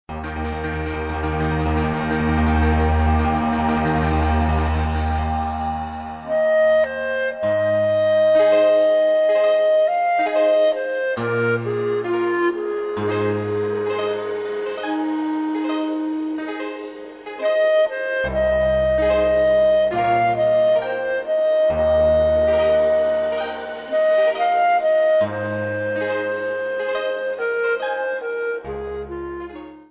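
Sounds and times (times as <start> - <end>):
bluegrass music: 0.1 - 29.8.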